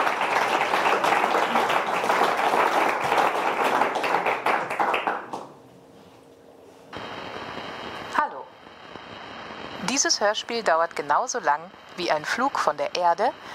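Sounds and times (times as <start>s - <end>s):
audience applause: 0.0s - 5.6s
speech: 10.0s - 13.5s.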